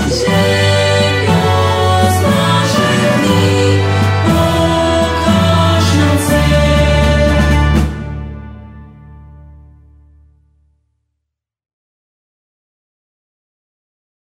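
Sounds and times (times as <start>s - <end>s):
hymn: 0.0s - 8.8s.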